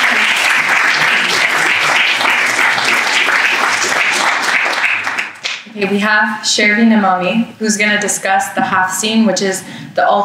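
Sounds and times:
audience applause: 0.0s - 5.4s
speech: 5.8s - 10.2s.

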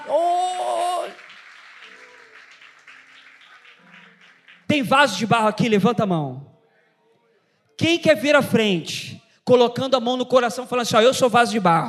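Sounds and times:
audience applauding: 0.0s - 5.5s
speech: 4.8s - 6.5s, 7.8s - 11.8s.

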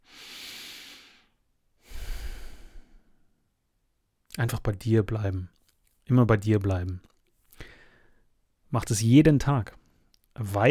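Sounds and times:
breathing in and out through the nose: 0.0s - 3.2s, 7.6s - 8.2s
speech: 4.4s - 7.1s, 8.7s - 9.8s, 10.4s - 10.7s.

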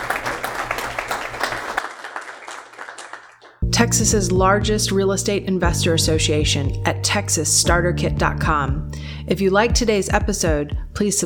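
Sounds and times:
crowd applause: 0.0s - 3.6s
speech: 3.8s - 11.2s.

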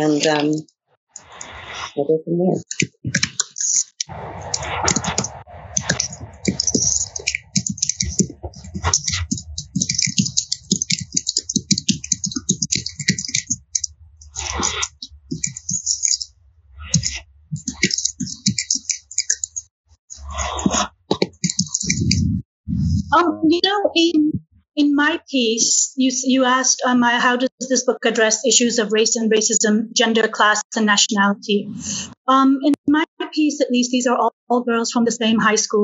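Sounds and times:
speech: 0.0s - 0.7s, 2.0s - 3.2s, 4.1s - 5.4s, 23.5s - 35.8s
typing a question on a computer keyboard: 2.6s - 23.1s.

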